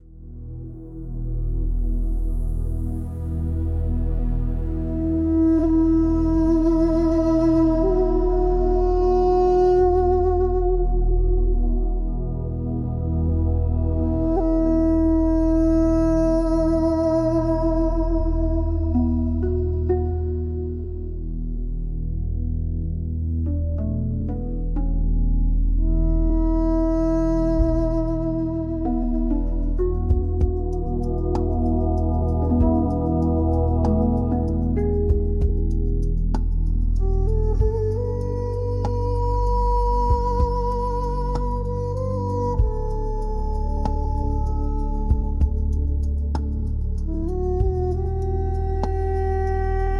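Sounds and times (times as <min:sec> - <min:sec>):
duduk: 0:00.0 - 0:49.9.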